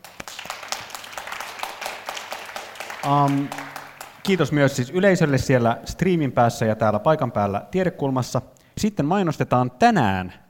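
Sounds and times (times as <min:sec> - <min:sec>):
audience applause: 0:00.0 - 0:05.4
speech: 0:03.0 - 0:03.6, 0:04.2 - 0:10.4.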